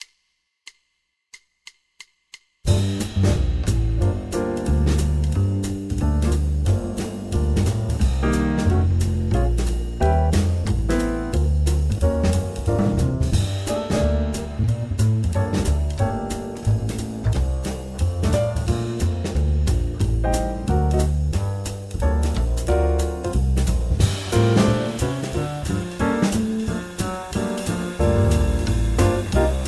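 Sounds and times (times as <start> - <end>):
backing track: 2.7 - 29.6.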